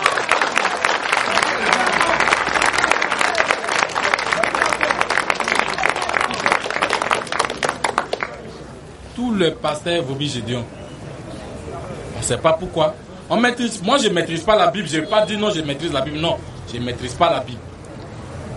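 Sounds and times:
church congregation clapping to acclaim the Lord: 0.0 - 8.4
church congregation cheering: 0.0 - 8.6
speech: 9.4 - 10.8, 12.2 - 17.7.

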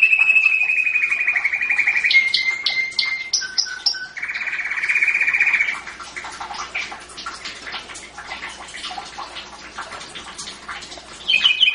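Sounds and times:
champion canary singing with rattling trills and whistled rolls: 0.0 - 6.6, 11.2 - 11.7.

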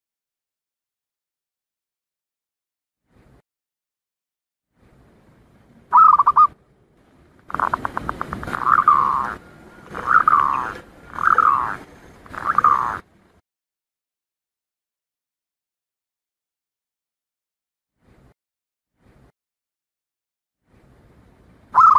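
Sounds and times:
Zebra dove staccato cooing song: 5.9 - 6.6, 7.5 - 13.0, 21.8 - 21.9.

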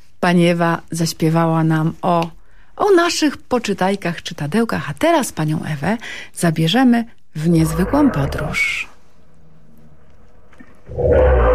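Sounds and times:
speech: 0.2 - 8.9, 10.9 - 11.5
lion roaring: 7.6 - 8.7, 10.8 - 11.5.

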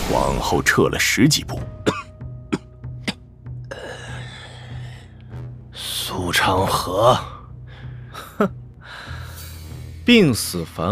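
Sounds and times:
speech: 0.1 - 2.0, 6.2 - 7.3, 8.4 - 8.6, 10.1 - 10.9
heavy rasping cough: 1.8 - 4.2.

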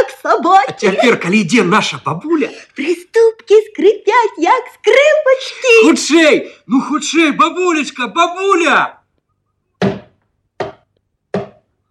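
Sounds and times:
speech: 0.0 - 9.0
knocking: 9.8 - 11.7.

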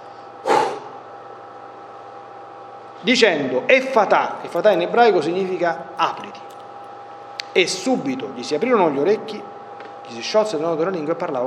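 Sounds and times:
breath blown out onto someone's face: 0.4 - 1.0
speech: 3.0 - 6.6, 7.6 - 9.5, 10.1 - 11.4.

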